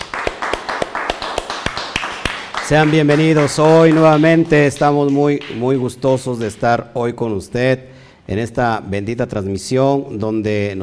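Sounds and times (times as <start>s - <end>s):
applause: 0.0s - 5.9s
speech: 2.7s - 10.8s.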